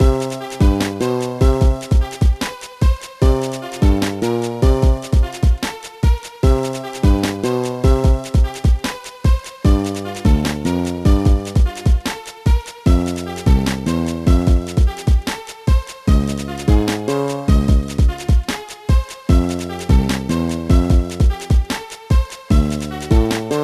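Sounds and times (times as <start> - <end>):
unused shop theme music: 0.0 - 23.6.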